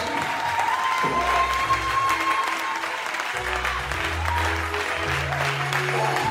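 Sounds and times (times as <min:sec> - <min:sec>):
church congregation applauding for Jesus: 0:00.0 - 0:06.2.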